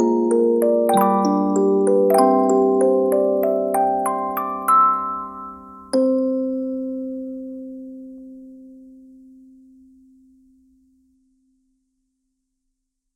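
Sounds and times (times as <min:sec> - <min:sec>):
music box: 0:00.0 - 0:08.9.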